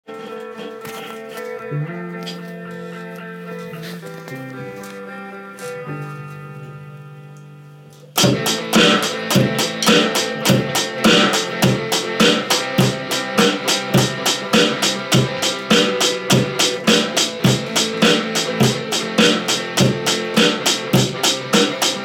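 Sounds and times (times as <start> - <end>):
four-four rock drum beat: 8.2 - 22.0.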